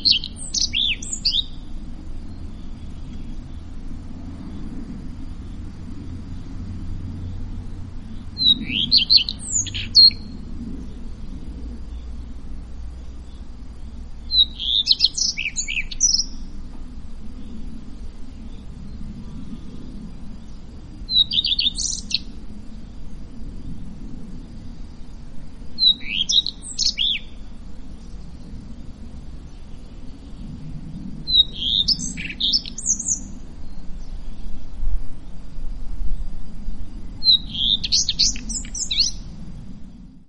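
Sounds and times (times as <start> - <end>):
common redstart singing: 0.0 - 16.6, 17.2 - 23.8, 24.5 - 34.6, 36.2 - 40.0.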